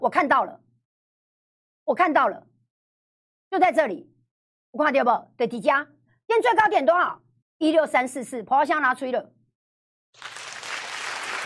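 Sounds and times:
speech: 0.0 - 0.7, 1.9 - 2.5, 3.5 - 4.1, 4.7 - 9.4
applause and cheering sound effect: 10.2 - 11.4.

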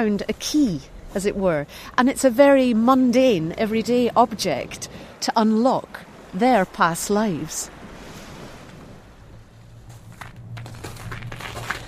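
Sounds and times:
speech: 0.0 - 7.8
low rumble: 8.8 - 11.8
footsteps crackling on frozen snow: 9.8 - 11.8.

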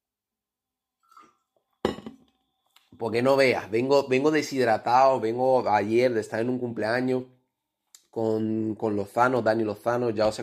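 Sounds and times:
sipping water from a glass: 1.0 - 2.9
speech: 3.0 - 7.4, 8.2 - 10.4.

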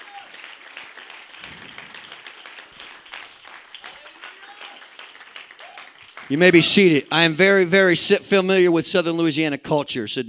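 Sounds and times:
audience applause: 0.0 - 6.8
speech: 6.3 - 10.2.

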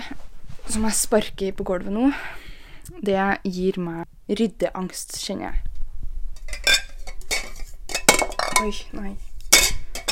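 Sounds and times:
speech: 0.7 - 2.4, 3.0 - 5.7, 8.6 - 9.3
glasses clinking together as they are gathered in a hand: 6.5 - 8.8.

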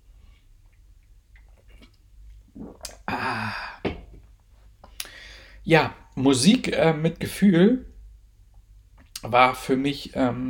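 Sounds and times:
sip of a drink to wet a dry throat: 0.7 - 5.2
speech: 5.6 - 7.9, 9.2 - 10.4.

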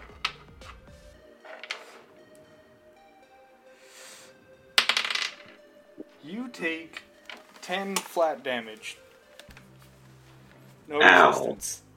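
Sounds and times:
twelve-sided die being rolled: 1.4 - 2.2, 4.8 - 5.6
speech: 6.3 - 7.1, 7.7 - 9.0, 10.9 - 11.8.

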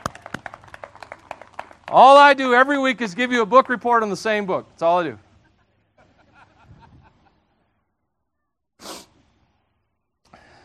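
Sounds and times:
audience applauding: 0.0 - 3.8
speech: 1.9 - 5.2
laughter: 5.4 - 7.8.

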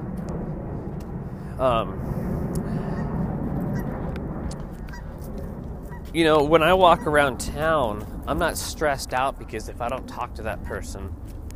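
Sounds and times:
airplane flying overhead: 0.0 - 11.5
speech: 1.6 - 2.3, 6.1 - 11.4.

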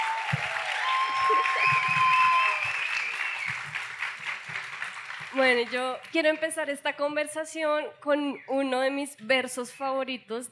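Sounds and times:
audience applause: 0.0 - 6.2
speech: 5.4 - 10.5.

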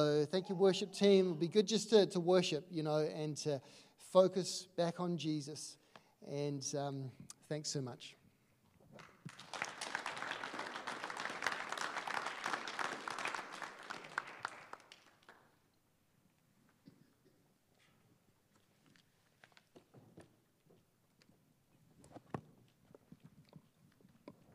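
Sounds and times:
speech: 0.0 - 8.2
audience clapping: 9.0 - 15.6.

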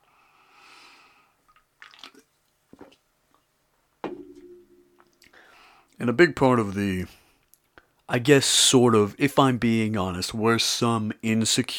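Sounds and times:
sipping a canned White Claw drink: 1.4 - 3.0
speech: 6.0 - 7.2, 8.1 - 11.7.

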